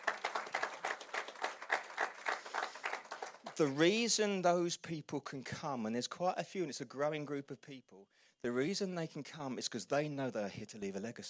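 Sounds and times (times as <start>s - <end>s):
church audience applause: 0.0s - 3.8s
speech: 3.6s - 11.2s.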